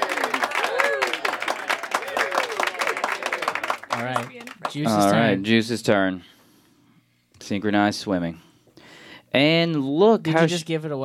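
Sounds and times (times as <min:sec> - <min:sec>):
round of applause: 0:00.0 - 0:05.1
speech: 0:04.0 - 0:06.4, 0:07.5 - 0:08.5, 0:09.3 - 0:11.0.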